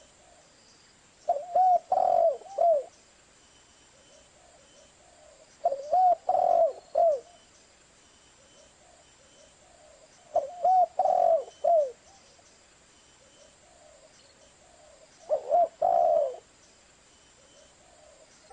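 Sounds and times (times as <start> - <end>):
spotted dove cooing: 1.3 - 2.9, 3.9 - 7.4, 8.4 - 12.3, 13.2 - 16.5, 17.4 - 18.4.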